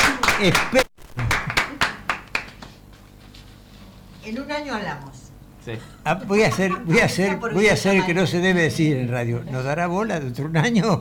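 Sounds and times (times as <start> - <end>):
soft hand claps of applause: 0.0 - 3.1
speech: 0.4 - 1.2, 4.2 - 10.9
laughter: 6.1 - 8.2.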